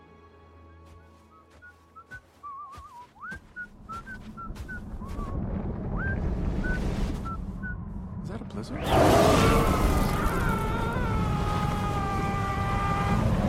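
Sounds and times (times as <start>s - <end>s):
sudden storm wind: 3.6s - 13.4s.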